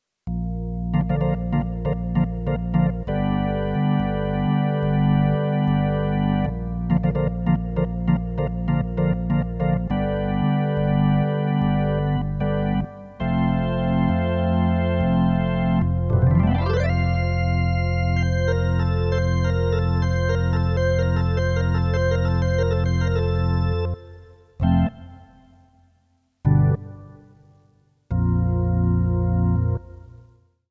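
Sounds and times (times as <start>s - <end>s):
pipe organ: 0.3s - 25.8s, 26.4s - 27.5s, 28.1s - 30.3s.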